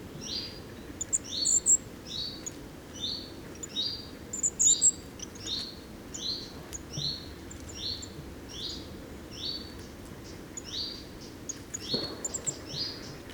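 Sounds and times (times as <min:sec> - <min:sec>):
common firecrest giving sharp very high thin notes: 0:00.2 - 0:09.6, 0:10.5 - 0:13.2.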